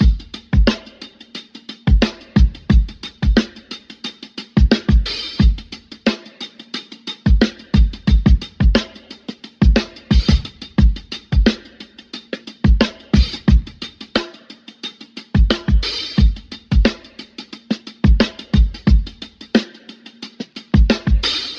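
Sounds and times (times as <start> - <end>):
boom bap drum loops: 0.0 - 21.5.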